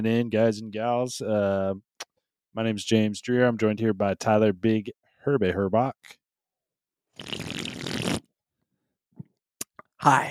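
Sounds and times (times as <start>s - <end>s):
speech: 0.0s - 1.9s, 2.6s - 6.2s, 7.2s - 7.6s, 10.0s - 10.2s
person slurping a drink: 7.2s - 8.3s.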